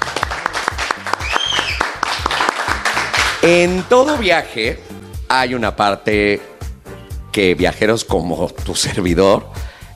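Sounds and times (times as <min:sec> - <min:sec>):
applause: 0:00.0 - 0:04.2
speech: 0:03.4 - 0:06.5, 0:07.4 - 0:09.7.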